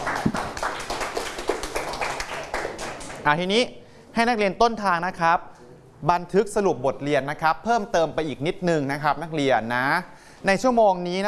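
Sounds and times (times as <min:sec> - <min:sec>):
classroom students clapping hands: 0:00.0 - 0:03.3
speech: 0:03.2 - 0:11.2.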